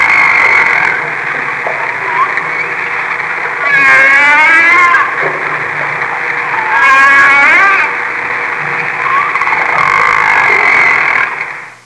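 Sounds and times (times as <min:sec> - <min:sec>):
whale call: 0:00.0 - 0:11.8.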